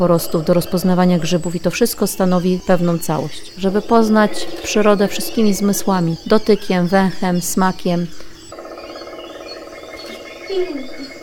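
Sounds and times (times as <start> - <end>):
speech: 0.0 - 8.3, 10.5 - 11.0
black woodpecker calling: 0.0 - 11.2.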